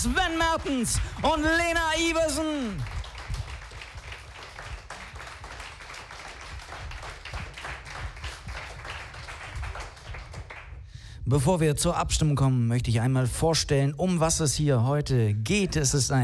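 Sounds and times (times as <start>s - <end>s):
speech: 0.0s - 3.0s, 11.3s - 16.2s
audience applause: 0.0s - 10.8s.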